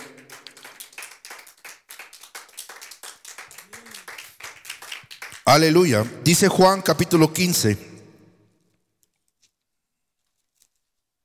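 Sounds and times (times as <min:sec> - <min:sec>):
congregation clapping hands: 0:00.0 - 0:07.8
speech: 0:05.5 - 0:07.9.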